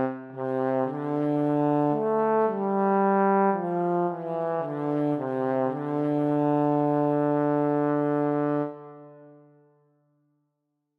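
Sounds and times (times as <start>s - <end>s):
solo trombone: 0.0s - 9.4s.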